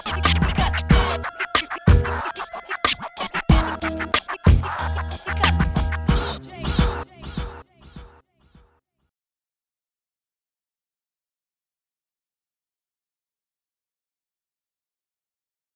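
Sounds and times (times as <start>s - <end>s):
music beat: 0.0s - 8.2s.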